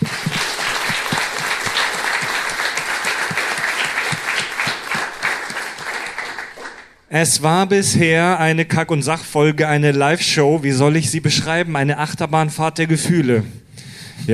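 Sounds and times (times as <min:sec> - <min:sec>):
audience applause: 0:00.0 - 0:07.0
speech: 0:07.1 - 0:13.6.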